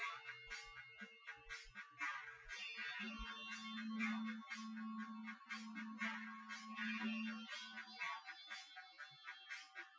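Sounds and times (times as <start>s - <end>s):
drums with synth convolution: 0.0s - 9.9s.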